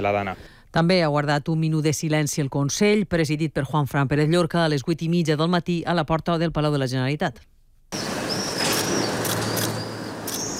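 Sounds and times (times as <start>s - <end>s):
speech: 0.0s - 8.1s
camera shutter clicks: 8.6s - 10.5s.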